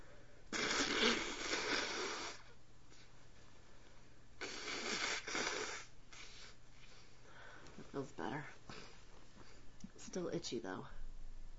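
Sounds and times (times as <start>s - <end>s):
nose blowing: 0.0s - 2.6s, 4.4s - 6.6s
speech: 10.2s - 11.0s.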